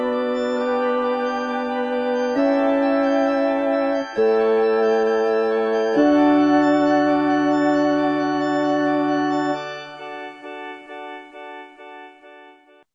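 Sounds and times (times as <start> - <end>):
bass: 0.0 - 9.6.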